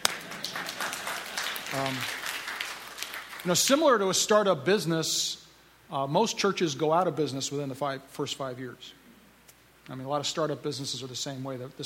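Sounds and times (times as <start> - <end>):
hand clapping: 0.0 - 3.6
speech: 1.7 - 2.2, 3.4 - 9.0, 9.9 - 11.8.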